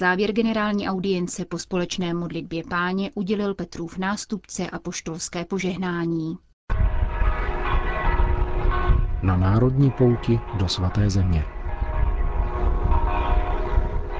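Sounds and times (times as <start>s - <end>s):
speech: 0.0s - 6.5s, 9.2s - 11.6s
church bells of Bethlehem Basilica of the Nativity: 6.7s - 14.1s.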